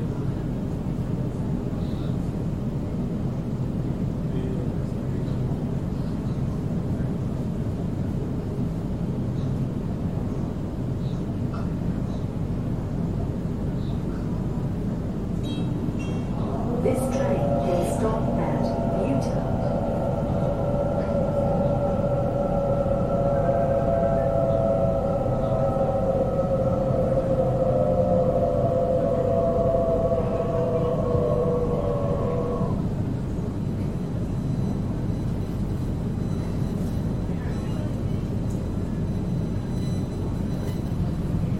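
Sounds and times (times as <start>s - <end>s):
Sydney train rumbling: 0.0s - 41.5s
tonal whine falling in pitch: 14.1s - 41.5s.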